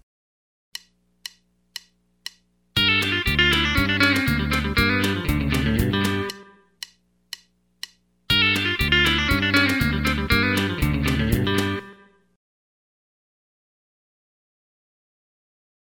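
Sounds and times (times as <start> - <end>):
country rock music: 2.8 - 6.6, 8.3 - 12.1.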